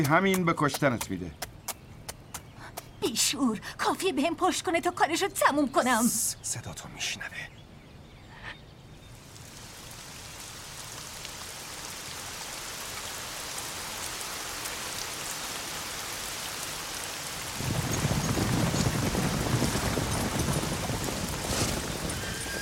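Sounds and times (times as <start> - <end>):
speech: 0.0 - 1.4, 3.0 - 7.6
heavy rain during a storm: 8.9 - 22.6.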